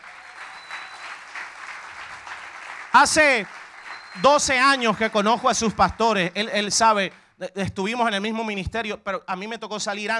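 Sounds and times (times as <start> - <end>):
applause: 0.0 - 7.2
speech: 2.9 - 3.6, 4.2 - 10.1.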